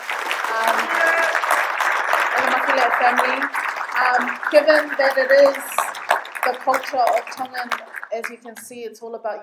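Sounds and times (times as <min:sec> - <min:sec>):
audience applause: 0:00.0 - 0:08.7
speech: 0:00.6 - 0:01.4, 0:02.6 - 0:05.8, 0:06.4 - 0:09.4.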